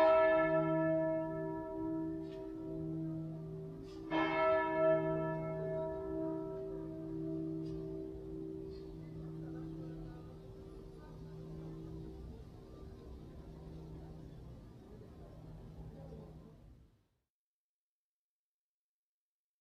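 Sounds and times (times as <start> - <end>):
cathedral bell tuned to E ringing: 0.0 - 14.6.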